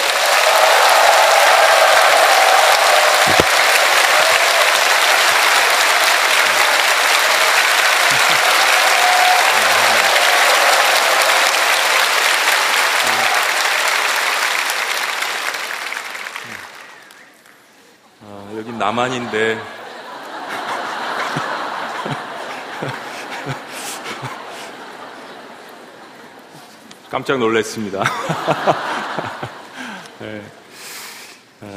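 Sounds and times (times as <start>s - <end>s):
audience applause: 0.0s - 17.5s, 18.5s - 26.8s, 28.0s - 30.2s
laughter: 3.0s - 14.0s, 18.6s - 26.8s, 28.0s - 30.2s
speech: 18.8s - 19.7s, 27.2s - 28.9s.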